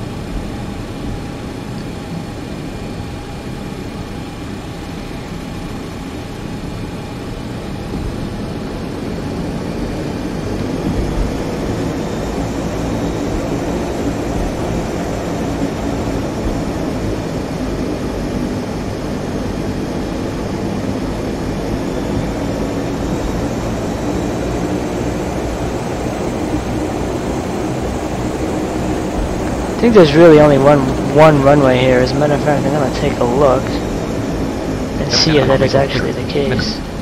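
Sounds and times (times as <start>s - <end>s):
aircraft engine from a flight simulator video game sound pack: 0.0s - 36.9s
speech: 29.9s - 33.9s, 35.1s - 36.9s.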